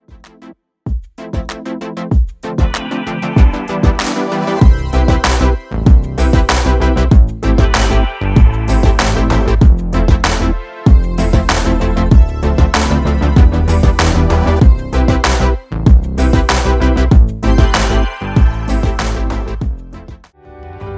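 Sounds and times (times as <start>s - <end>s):
lounge music: 1.2s - 20.3s.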